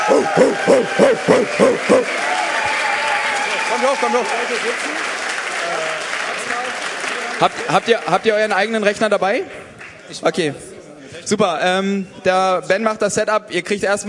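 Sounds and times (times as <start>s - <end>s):
audience applause: 0.0s - 8.8s
speech: 0.1s - 2.4s, 3.7s - 6.5s, 7.4s - 14.0s.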